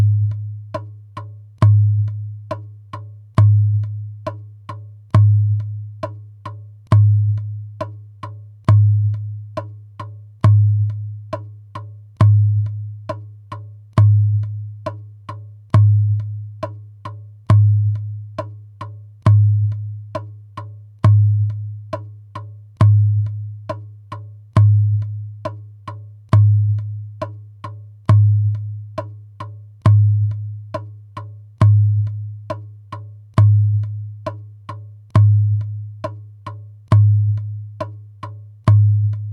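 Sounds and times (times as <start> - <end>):
djembe drumming in four beats: 0.0 - 39.3.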